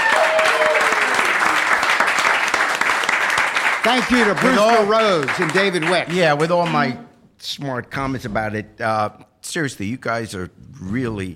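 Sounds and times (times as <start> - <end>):
faint whoops or tonal calls: 0.0 - 1.3
audience applause: 0.0 - 6.9
speech: 3.8 - 11.3.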